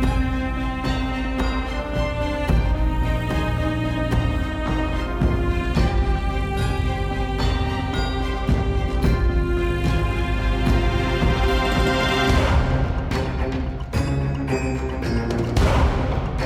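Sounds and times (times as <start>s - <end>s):
fight music: 0.0s - 16.4s.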